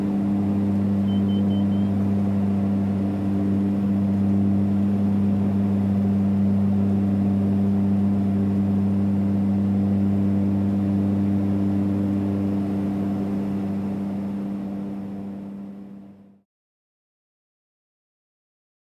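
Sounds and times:
cockpit engine hum: 0:00.0 - 0:16.4
cockpit ambience: 0:00.6 - 0:02.3.

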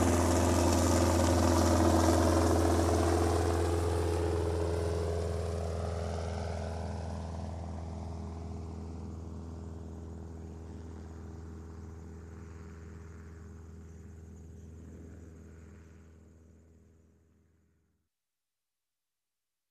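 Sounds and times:
helicopter engine starting: 0:00.0 - 0:15.5.

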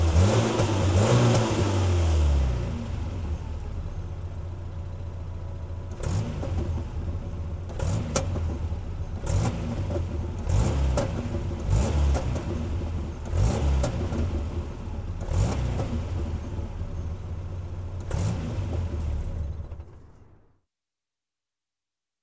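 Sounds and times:
SUV engine starting and running: 0:00.0 - 0:20.5.

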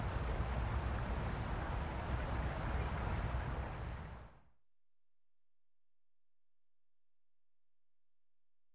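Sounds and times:
crickets chirping at night on a city side: 0:00.0 - 0:04.4.

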